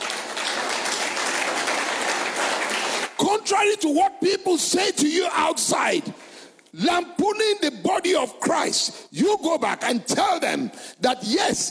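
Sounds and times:
audience clapping: 0:00.0 - 0:03.2
speech: 0:03.2 - 0:11.7.

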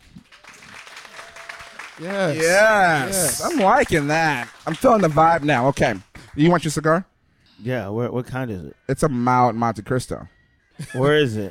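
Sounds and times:
audience applause: 0:00.0 - 0:06.6
speech: 0:02.0 - 0:11.4.

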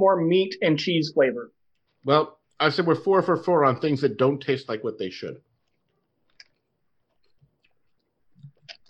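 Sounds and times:
speech: 0:00.0 - 0:05.5
chewing a meat-and-cheese flavored chip: 0:05.5 - 0:08.8.

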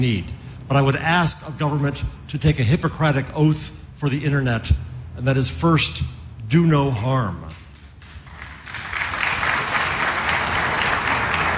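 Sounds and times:
speech: 0:00.0 - 0:07.6
scattered audience applause: 0:08.0 - 0:11.5.

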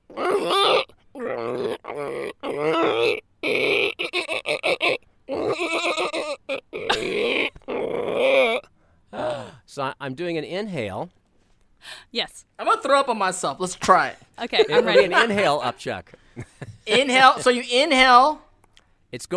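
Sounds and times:
vocal imitation of an ostrich-horse animal call: 0:00.0 - 0:09.3
speech: 0:00.1 - 0:03.2, 0:10.0 - 0:11.2, 0:12.1 - 0:16.2, 0:16.9 - 0:18.4, 0:19.1 - 0:19.3.

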